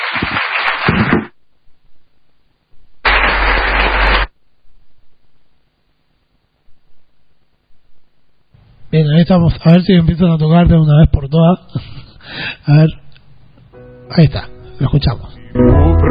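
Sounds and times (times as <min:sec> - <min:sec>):
audience applause: 0:00.0 - 0:01.2, 0:03.1 - 0:04.3
speech: 0:09.1 - 0:13.0, 0:14.1 - 0:16.0.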